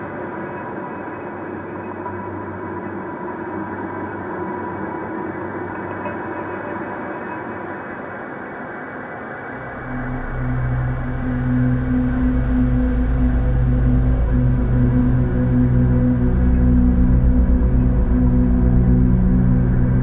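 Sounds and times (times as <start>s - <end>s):
cinematic soundscape: 9.6s - 20.0s.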